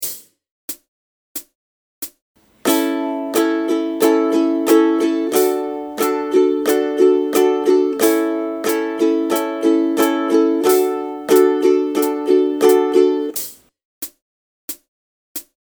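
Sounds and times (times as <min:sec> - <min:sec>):
ukulele strumming: 0:02.6 - 0:13.5.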